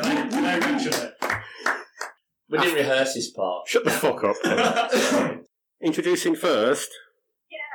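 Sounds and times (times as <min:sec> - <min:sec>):
laughter: 0:00.0 - 0:01.4, 0:03.9 - 0:05.4
hand clapping: 0:00.0 - 0:02.2
speech: 0:00.6 - 0:01.2, 0:02.5 - 0:07.1.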